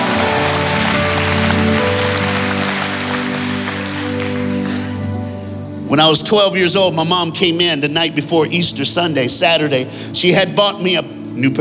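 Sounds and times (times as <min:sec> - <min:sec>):
audience applause: 0:00.0 - 0:05.1
speech: 0:05.9 - 0:11.5.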